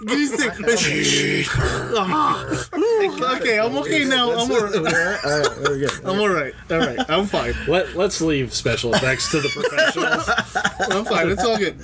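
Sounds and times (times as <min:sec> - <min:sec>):
man growling imitating Darth Vader: 0:00.0 - 0:02.8
laughter: 0:00.0 - 0:11.8
speech: 0:00.0 - 0:11.8.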